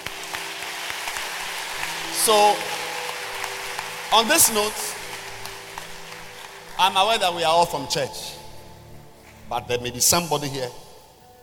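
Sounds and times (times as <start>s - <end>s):
crowd applause: 0.0s - 7.4s
speech: 2.3s - 2.8s, 4.1s - 4.8s, 6.8s - 8.4s, 9.5s - 10.8s.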